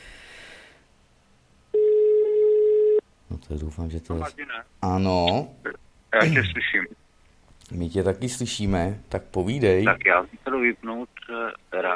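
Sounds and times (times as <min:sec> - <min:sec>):
telephone ringing tone on outgoing call: 0:01.7 - 0:03.0
speech: 0:03.4 - 0:07.0, 0:07.7 - 0:11.9.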